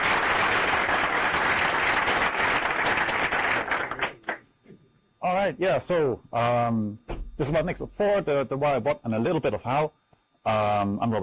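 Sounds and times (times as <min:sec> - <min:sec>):
audience applause: 0:00.0 - 0:04.4
speech: 0:05.5 - 0:11.2.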